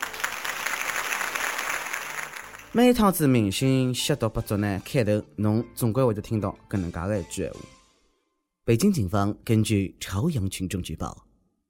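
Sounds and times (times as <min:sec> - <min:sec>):
applause: 0:00.0 - 0:03.0
speech: 0:02.8 - 0:07.8, 0:08.7 - 0:11.2.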